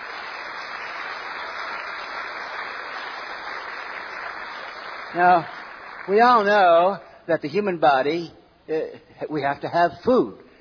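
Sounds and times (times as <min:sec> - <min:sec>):
audience applause: 0:00.0 - 0:06.5
speech: 0:05.1 - 0:10.4.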